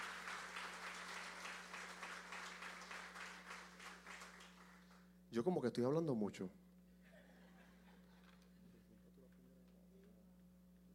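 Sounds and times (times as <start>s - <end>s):
audience applause: 0.0s - 5.0s
speech: 5.3s - 6.6s
laughter: 7.0s - 8.8s.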